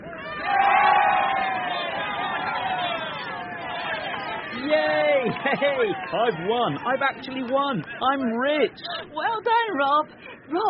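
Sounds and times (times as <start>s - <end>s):
crowd cheering at the end of a horse race: 0.0s - 9.8s
laughter: 1.9s - 9.4s
speech: 5.4s - 10.6s.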